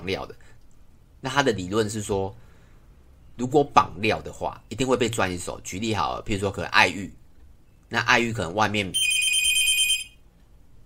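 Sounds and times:
speech: 0.0s - 0.4s, 1.2s - 2.4s, 3.4s - 7.2s, 7.9s - 9.2s
telephone ringing with a bright high electronic trill: 9.0s - 10.2s.

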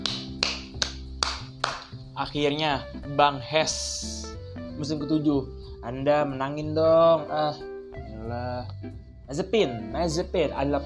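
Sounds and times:
hand claps: 0.0s - 2.0s
speech: 2.2s - 10.8s.

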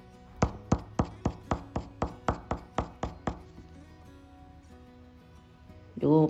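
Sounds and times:
HB pencil tapping dots on a tabletop: 0.4s - 3.6s
speech: 6.0s - 6.2s.

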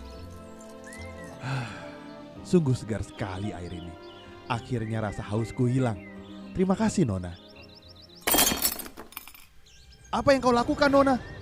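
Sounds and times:
speech: 2.5s - 7.4s, 10.2s - 11.4s
clay water jug smashed on the ground: 8.2s - 9.4s.

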